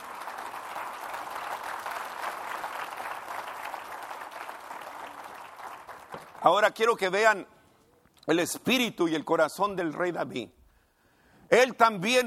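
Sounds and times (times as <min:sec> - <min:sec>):
audience applause: 0:00.0 - 0:06.6
speech: 0:06.4 - 0:07.5, 0:08.2 - 0:10.6, 0:11.5 - 0:12.2.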